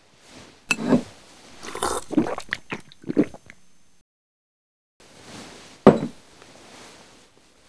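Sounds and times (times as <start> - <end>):
person drinking: 1.6 - 3.6.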